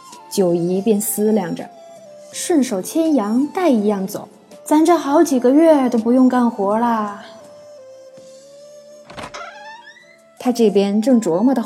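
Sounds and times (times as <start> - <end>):
speech: 0.3 - 7.4, 10.4 - 11.6
wooden bookcase door creaking open: 9.0 - 10.4.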